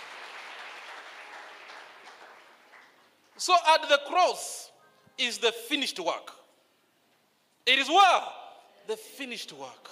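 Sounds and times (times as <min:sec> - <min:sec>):
audience clapping: 0:00.0 - 0:03.5
speech: 0:03.4 - 0:06.4, 0:07.6 - 0:09.9.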